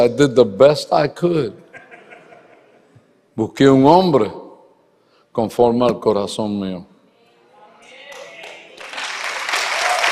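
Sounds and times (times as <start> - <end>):
speech: 0.0 - 1.6, 3.4 - 4.4, 5.4 - 6.9
laughter: 1.6 - 3.1
audience applause: 8.1 - 10.1.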